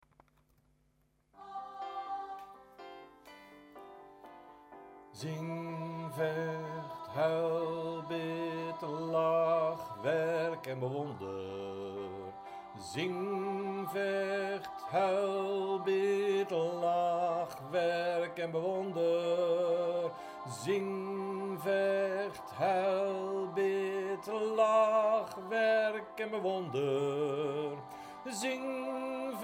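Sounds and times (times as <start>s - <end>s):
soprano singing chorus: 1.4s - 3.0s, 5.2s - 29.4s.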